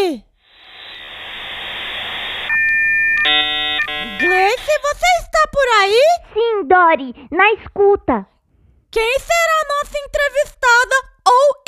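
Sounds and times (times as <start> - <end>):
harsh buzzy static hiss: 0.0 - 5.2
steady high pure electronic tone: 0.4 - 5.4
chord of electronic beeps: 0.6 - 4.8
speech: 4.4 - 8.3, 8.9 - 11.6.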